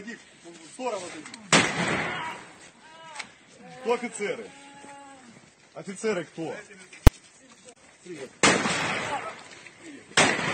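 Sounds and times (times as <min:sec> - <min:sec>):
speech: 0:00.0 - 0:02.4, 0:03.8 - 0:04.6, 0:05.8 - 0:07.0, 0:08.1 - 0:09.0
gunshots in a played video: 0:01.5 - 0:02.5, 0:08.4 - 0:09.4, 0:10.2 - 0:10.5.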